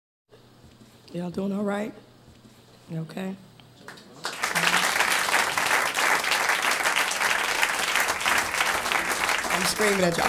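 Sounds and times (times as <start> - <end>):
speech: 1.1 - 2.1, 2.9 - 4.0, 9.6 - 10.2
audience clapping: 3.9 - 10.2.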